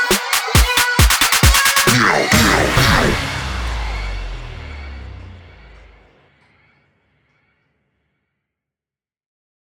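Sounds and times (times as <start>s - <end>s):
saxophone: 0.0s - 4.7s.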